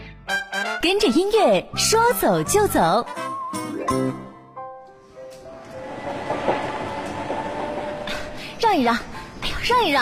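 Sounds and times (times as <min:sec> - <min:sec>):
speech: 0:00.8 - 0:03.3, 0:03.9 - 0:04.2, 0:08.7 - 0:09.1, 0:09.7 - 0:10.0
train passing on rails: 0:05.0 - 0:10.0.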